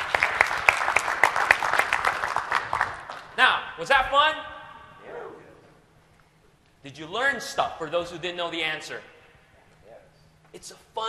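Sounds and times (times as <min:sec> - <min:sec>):
audience applause: 0:00.0 - 0:03.4
speech: 0:03.4 - 0:04.5, 0:06.8 - 0:09.1, 0:10.5 - 0:11.0.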